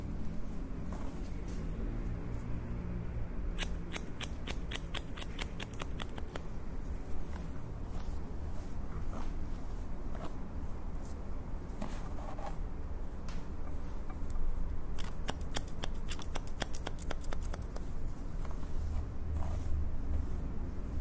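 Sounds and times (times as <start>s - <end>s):
soft rustling: 0.1s - 2.7s, 6.2s - 14.7s, 17.5s - 20.9s
scissors snipping: 3.5s - 6.5s, 14.9s - 17.8s.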